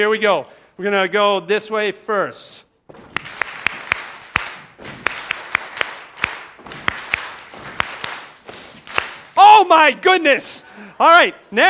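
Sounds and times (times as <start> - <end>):
speech: 0.0 - 3.0, 9.7 - 11.6
rhythmic foot stomping: 2.8 - 9.4.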